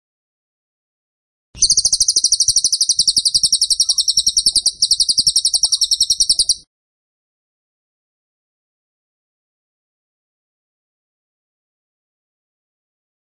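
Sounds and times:
tembakan bird high-pitched pulsed trill: 0:01.6 - 0:06.6.

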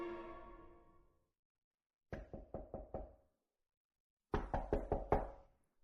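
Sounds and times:
knocking on a door: 0:02.2 - 0:03.2, 0:04.4 - 0:05.4.

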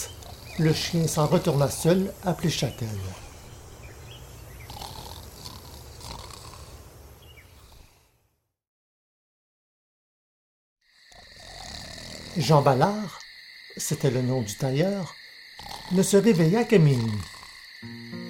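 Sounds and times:
loud snoring: 0:00.0 - 0:02.1, 0:04.6 - 0:06.9, 0:11.0 - 0:13.2, 0:15.5 - 0:18.2
speech: 0:00.6 - 0:03.2, 0:12.4 - 0:13.2, 0:13.8 - 0:18.1.

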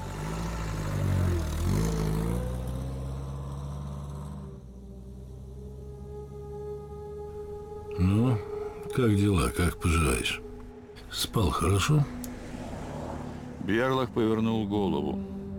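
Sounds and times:
large American taxi engine revving as the car pulls away: 0:00.0 - 0:07.5, 0:11.6 - 0:15.5
speech: 0:09.0 - 0:10.5, 0:11.1 - 0:12.2, 0:13.7 - 0:15.4.

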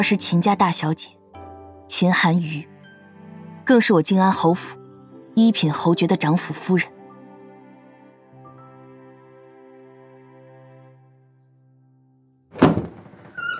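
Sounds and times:
speech: 0:00.0 - 0:01.2, 0:01.9 - 0:02.7, 0:03.7 - 0:04.8, 0:05.4 - 0:07.0
wooden door of the Fuling Temple back room opening: 0:12.5 - 0:13.5
heavy knocks: 0:12.6 - 0:13.5.

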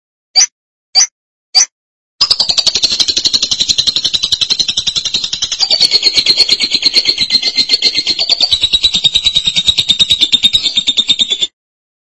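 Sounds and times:
lovebird chattering trill: 0:02.2 - 0:11.5.

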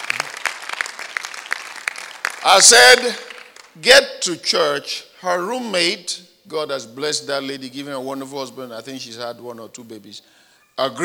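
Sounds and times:
audience clapping: 0:00.0 - 0:03.8
speech: 0:02.4 - 0:11.0.

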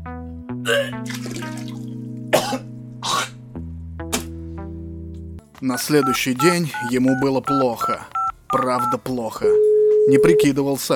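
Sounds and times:
person vomiting into a toilet: 0:00.6 - 0:03.4
speech: 0:00.7 - 0:01.8, 0:02.4 - 0:02.7, 0:05.6 - 0:10.9.

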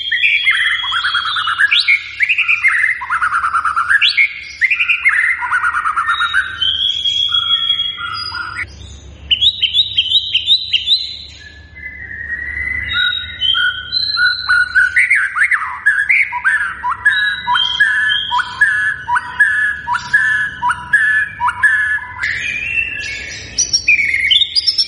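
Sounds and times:
white-rumped shama singing: 0:00.0 - 0:24.8.

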